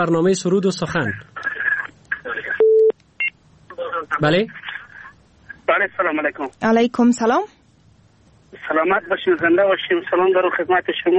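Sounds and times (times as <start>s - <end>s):
speech: 0.0s - 1.4s, 4.1s - 4.6s, 5.7s - 7.6s, 8.6s - 11.1s
telephone line tone on an incoming call to a radio phone-in: 2.6s - 2.9s.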